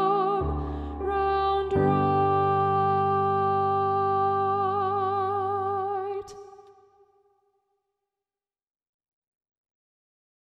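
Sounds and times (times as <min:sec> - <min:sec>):
all alto voices singing in G major: 0:00.0 - 0:06.8.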